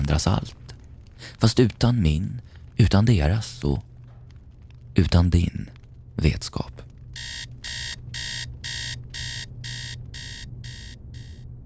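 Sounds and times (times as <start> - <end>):
speech: 0.1 - 0.6, 1.2 - 3.9, 5.0 - 7.5
alarm clock ringing: 7.2 - 11.4.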